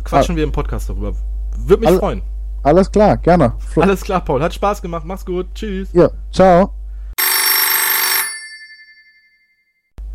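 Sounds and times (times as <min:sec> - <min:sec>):
speech: 0:00.1 - 0:06.8
telephone bell ringing for an incoming call: 0:07.2 - 0:09.8.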